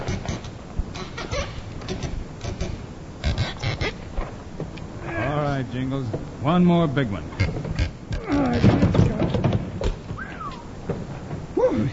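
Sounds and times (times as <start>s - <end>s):
dull knocks and scraping: 0.0s - 4.9s, 7.3s - 11.6s
heavy wooden trap door creaking as it is forced up: 0.0s - 11.9s
speech: 5.6s - 7.5s.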